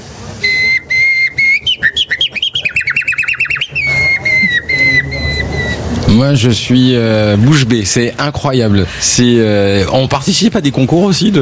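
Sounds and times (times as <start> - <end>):
person whistling an imitation of a nightingale's song: 0.4 - 5.9
speech: 6.2 - 11.3.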